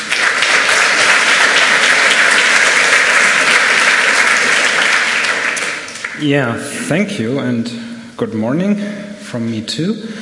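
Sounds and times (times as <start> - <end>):
audience applause: 0.0 - 6.3
speech: 6.2 - 10.2.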